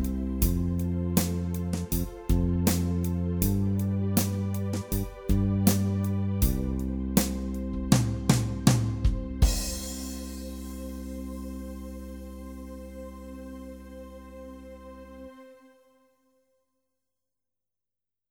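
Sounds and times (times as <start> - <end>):
groove jam track in C: 0.0 - 12.6.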